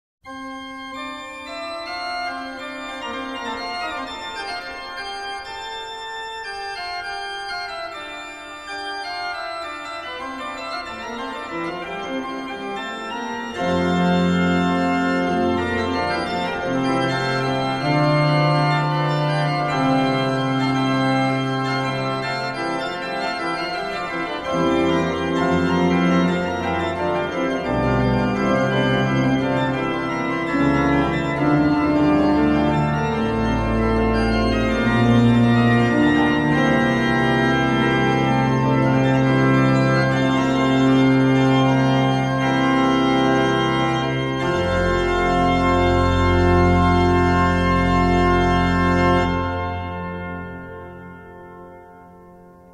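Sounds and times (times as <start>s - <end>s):
prelude in E major: 0.3s - 52.7s.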